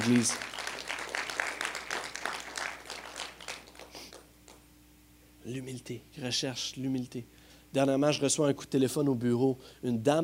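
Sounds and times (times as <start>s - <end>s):
speech: 0.0s - 0.6s, 5.5s - 10.2s
audience applauding: 0.0s - 4.6s.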